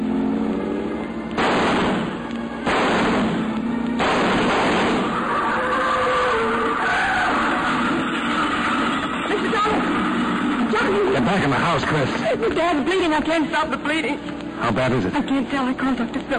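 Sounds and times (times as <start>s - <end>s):
car pulling away: 0.0s - 12.3s
speech: 11.7s - 16.3s.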